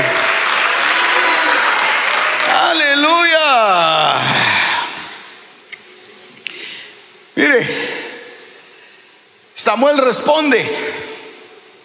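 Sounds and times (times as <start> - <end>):
audience applauding loudly: 0.0 - 5.2
speech: 9.7 - 11.0.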